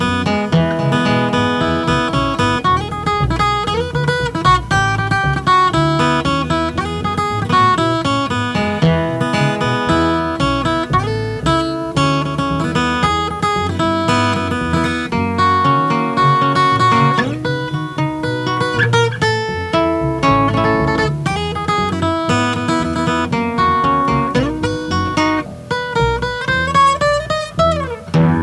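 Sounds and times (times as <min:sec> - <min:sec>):
steel guitar: 0:00.0 - 0:28.4.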